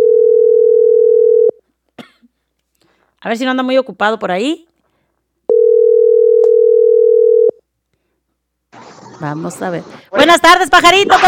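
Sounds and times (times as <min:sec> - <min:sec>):
telephone dial tone while calling: 0:00.0 - 0:01.5, 0:05.5 - 0:07.5
speech: 0:03.2 - 0:04.7, 0:09.2 - 0:11.2.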